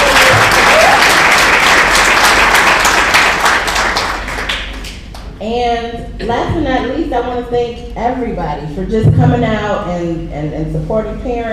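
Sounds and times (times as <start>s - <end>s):
audience applause: 0.0s - 5.0s
speech: 5.5s - 11.5s.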